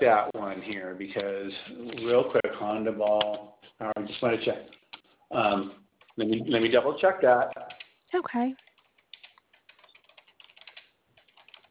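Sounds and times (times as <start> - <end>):
speech: 0.0 - 8.6
typing on a computer keyboard: 7.5 - 8.0, 8.6 - 11.6.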